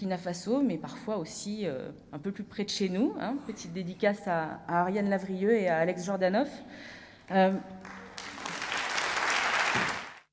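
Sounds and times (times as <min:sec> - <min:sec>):
speech: 0:00.0 - 0:08.0
audience applause: 0:07.8 - 0:10.3.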